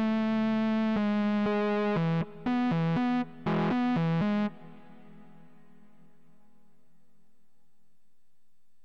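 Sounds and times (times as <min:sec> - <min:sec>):
synth lead: 0:00.0 - 0:05.2.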